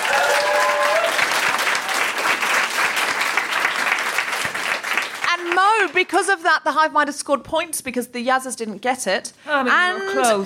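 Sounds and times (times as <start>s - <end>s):
crowd applauding: 0.0s - 6.0s
speech: 6.0s - 10.4s.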